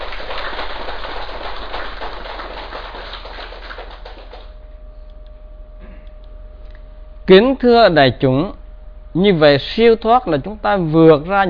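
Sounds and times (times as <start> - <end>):
audience applause: 0.0 - 4.5
speech: 7.3 - 8.6, 9.2 - 11.4.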